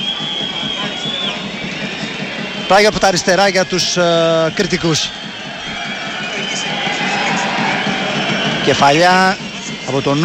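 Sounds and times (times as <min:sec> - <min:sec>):
stadium crowd applauding: 0:00.0 - 0:10.2
thin high whistling tone: 0:00.0 - 0:10.2
speech: 0:02.7 - 0:05.3, 0:08.7 - 0:10.2.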